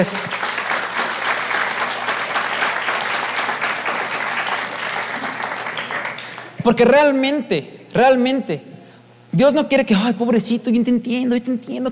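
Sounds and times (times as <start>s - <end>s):
speech: 0.0s - 0.4s, 6.6s - 8.7s, 9.3s - 11.9s
audience applauding: 0.0s - 6.6s.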